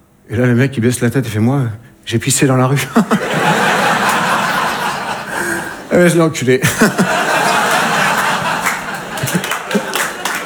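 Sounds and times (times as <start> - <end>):
speech: 0.3 - 3.2, 5.9 - 7.4
audience laughing and chuckling: 2.8 - 10.4
crowd clapping: 3.4 - 5.9, 6.6 - 10.4.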